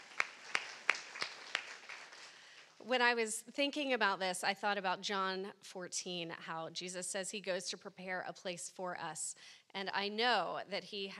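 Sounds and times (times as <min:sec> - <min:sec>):
faint hand claps at a ladies' lunch at St. Philip's Church: 0:00.0 - 0:02.7
speech: 0:02.9 - 0:11.1.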